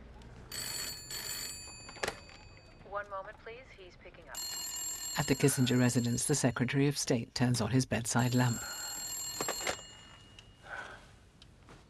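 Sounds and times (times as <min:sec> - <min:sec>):
office telephone ringing for a call from Secretary Kissinger: 0:00.5 - 0:02.9, 0:04.4 - 0:06.9, 0:08.0 - 0:10.7
speech: 0:03.0 - 0:04.6, 0:05.2 - 0:08.8.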